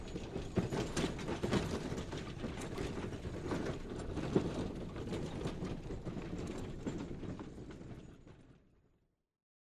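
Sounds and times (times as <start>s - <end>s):
horse cart moving: 0.0s - 8.1s.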